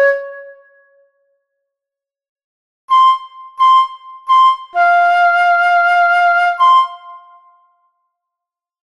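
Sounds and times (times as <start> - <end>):
transverse flute: 0.0 - 1.0, 2.9 - 7.5.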